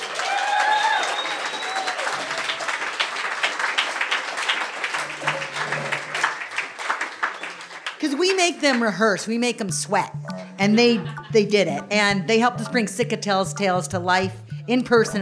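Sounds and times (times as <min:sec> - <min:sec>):
whistles and cheers: 0:00.0 - 0:03.0, 0:05.4 - 0:07.7
crowd applause: 0:00.0 - 0:09.2
speech: 0:08.0 - 0:15.1.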